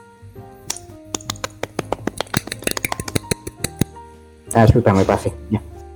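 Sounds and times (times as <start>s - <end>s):
person clapping hands: 0.7s - 3.9s
speech: 4.5s - 5.7s.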